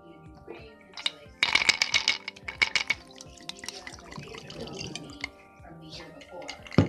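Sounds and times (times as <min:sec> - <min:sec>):
faint voices: 0:00.0 - 0:06.8
cognac being poured into glass: 0:01.0 - 0:05.4, 0:06.0 - 0:06.8.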